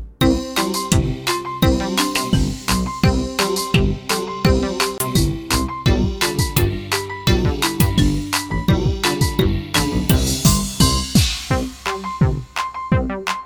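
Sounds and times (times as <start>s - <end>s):
karaoke backing track: 0.2s - 13.2s.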